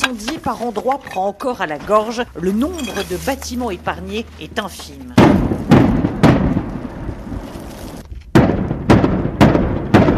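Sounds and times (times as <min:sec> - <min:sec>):
speech: 0:00.1 - 0:05.2
distant combat explosions: 0:05.2 - 0:10.1.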